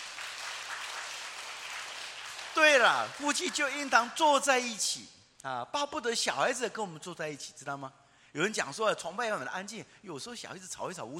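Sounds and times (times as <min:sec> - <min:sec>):
church congregation applause during a worship service: 0:00.0 - 0:04.6
speech: 0:02.6 - 0:11.1.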